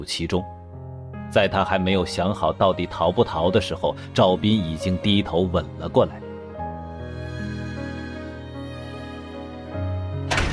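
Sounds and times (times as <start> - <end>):
speech: 0.0 - 0.6, 1.3 - 6.2
sustained tonal music: 1.0 - 10.5
heavy door slamming shut in a hospital stairwell: 10.2 - 10.5.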